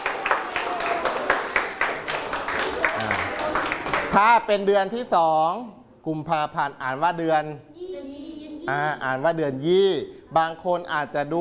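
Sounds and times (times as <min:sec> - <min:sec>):
group clapping: 0:00.0 - 0:04.2
speech: 0:04.2 - 0:07.7, 0:08.7 - 0:11.4.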